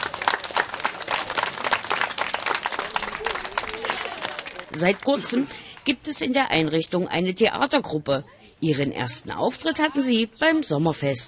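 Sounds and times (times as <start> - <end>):
children applauding: 0.0 - 5.5
speech: 4.8 - 11.2.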